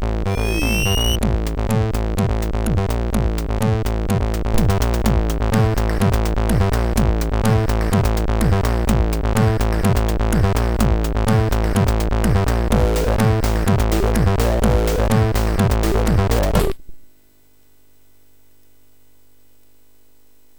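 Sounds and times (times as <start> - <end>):
intro music on SID MOS6581R3 chip: 0.2 - 3.8, 4.5 - 16.7.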